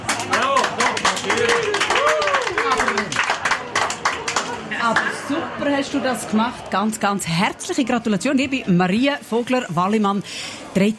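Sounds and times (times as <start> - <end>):
crowd applauding: 0.0 - 5.1
people whooping and cheering: 0.3 - 3.2
speech: 5.8 - 10.9.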